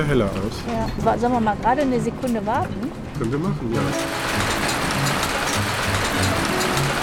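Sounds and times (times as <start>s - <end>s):
speech: 0.0s - 4.4s
hail falling: 3.8s - 7.0s.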